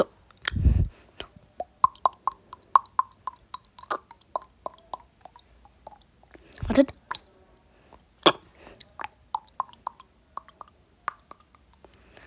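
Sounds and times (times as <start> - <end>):
mouth beatboxing: 1.6 - 6.0, 8.3 - 11.6
speech: 6.8 - 7.0.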